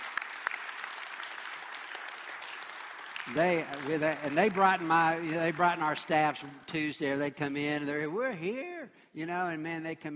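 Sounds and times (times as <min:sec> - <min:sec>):
round of applause: 0:00.0 - 0:07.0
speech: 0:03.3 - 0:10.1.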